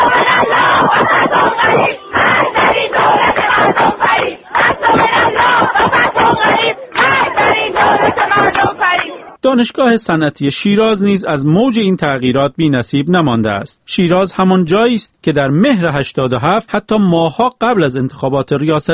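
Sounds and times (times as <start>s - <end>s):
crowd of students shouting and chanting anti-government slogans: 0.0s - 9.4s
speech: 9.5s - 18.9s.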